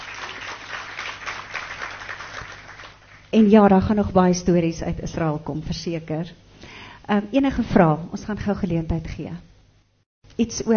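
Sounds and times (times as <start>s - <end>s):
audience applause: 0.0s - 3.3s
speech: 3.3s - 6.4s, 7.1s - 9.5s, 10.4s - 10.7s.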